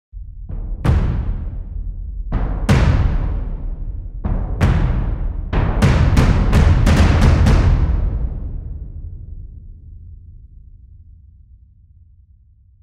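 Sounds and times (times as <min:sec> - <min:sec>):
ensemble music: 0:00.2 - 0:12.8.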